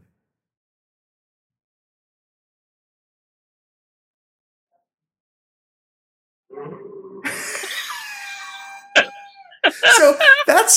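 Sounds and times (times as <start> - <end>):
laughter: 7.2 - 10.7
person imitating horse whinny: 8.0 - 9.6
person coughing: 8.9 - 10.2
speech: 9.7 - 10.7.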